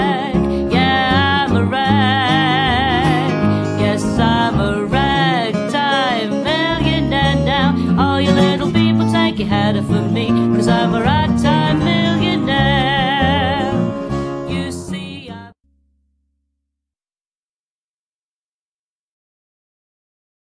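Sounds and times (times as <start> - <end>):
slow drag ragtime: 0.0 - 15.4.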